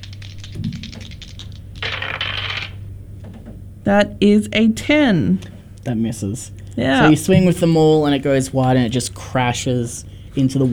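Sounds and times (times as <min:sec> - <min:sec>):
dice being rolled: 0:00.0 - 0:02.8
faint steady low hum: 0:00.0 - 0:10.7
speech: 0:03.9 - 0:10.7.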